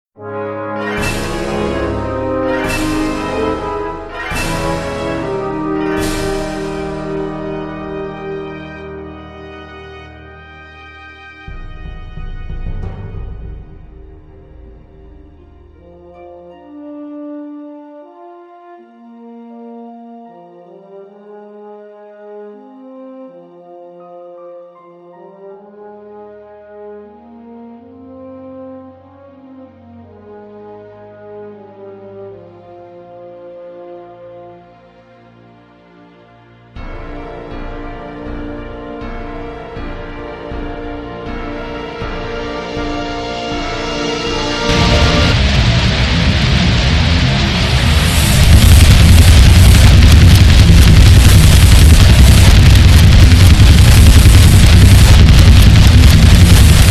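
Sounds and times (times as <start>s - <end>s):
metal instrumental music: 0.8s - 8.1s, 11.5s - 16.6s, 36.8s - 56.8s.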